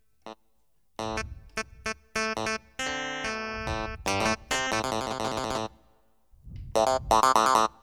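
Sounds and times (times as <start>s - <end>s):
clavinet playing: 1.0s - 5.8s, 6.8s - 7.8s.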